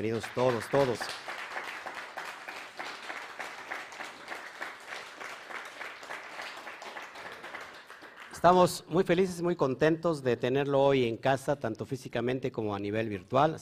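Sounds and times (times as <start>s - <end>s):
speech: 0.0s - 1.3s, 8.4s - 13.6s
audience applause: 0.0s - 8.6s.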